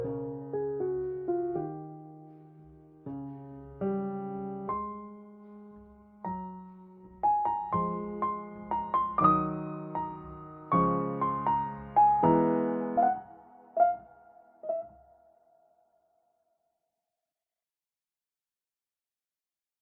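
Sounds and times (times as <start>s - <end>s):
piano cover: 0.0s - 15.2s.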